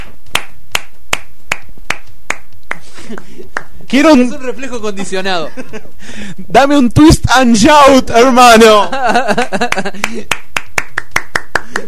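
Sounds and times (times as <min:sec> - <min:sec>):
rhythmic hand clapping: 0:00.0 - 0:03.9, 0:09.1 - 0:11.8
laughter: 0:02.8 - 0:03.6, 0:04.8 - 0:06.5, 0:08.7 - 0:10.3
speech: 0:03.1 - 0:10.5.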